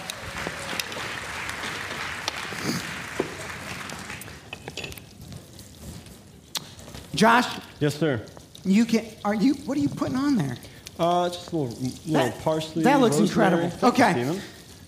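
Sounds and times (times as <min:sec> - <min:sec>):
audience applause: 0:00.0 - 0:04.5
speech: 0:07.2 - 0:14.5.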